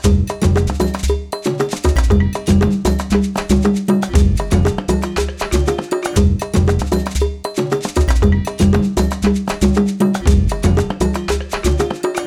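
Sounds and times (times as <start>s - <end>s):
rumba dancing music loop: 0.0s - 12.2s.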